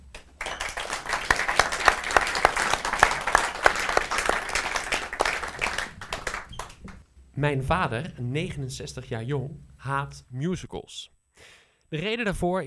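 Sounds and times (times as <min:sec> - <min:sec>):
audience applause: 0:00.0 - 0:07.0
speech: 0:07.4 - 0:11.2, 0:11.9 - 0:12.6.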